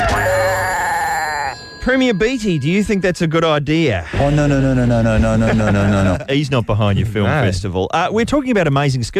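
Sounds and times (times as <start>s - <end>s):
alarm bell ringing: 0.1s - 5.1s
speech: 1.9s - 9.1s
laughter: 4.1s - 7.5s.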